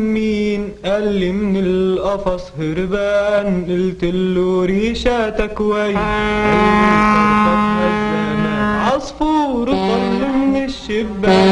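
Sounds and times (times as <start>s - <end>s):
speech: 0.0s - 8.3s, 8.9s - 11.4s
ship sound from a film intro: 6.0s - 11.4s.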